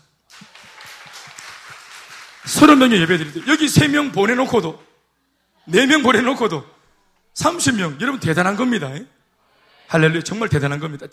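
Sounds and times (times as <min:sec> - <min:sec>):
applause: 0:00.0 - 0:04.8
speech: 0:02.5 - 0:04.9, 0:05.7 - 0:06.7, 0:07.4 - 0:09.2, 0:09.9 - 0:11.1.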